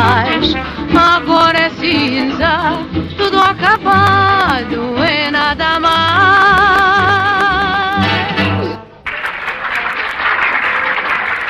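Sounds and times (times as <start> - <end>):
sung orchestrated song with wavering vocal notes: 0.0 - 8.9
applause from two men watching a stage show in a 1956 film comedy: 9.0 - 11.4.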